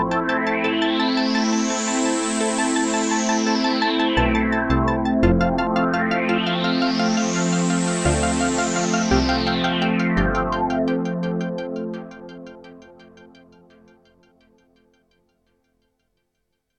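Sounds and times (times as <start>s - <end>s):
synth sweep pad: 0.0s - 11.8s.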